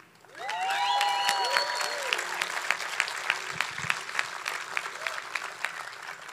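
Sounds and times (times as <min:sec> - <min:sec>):
audience applause: 0:00.0 - 0:06.3
faint whistles: 0:00.8 - 0:02.5.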